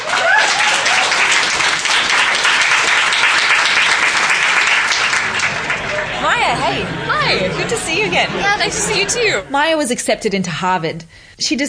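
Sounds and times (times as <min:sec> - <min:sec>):
audience applause: 0:00.0 - 0:09.7
laughter: 0:00.2 - 0:10.2
speech: 0:06.7 - 0:11.6.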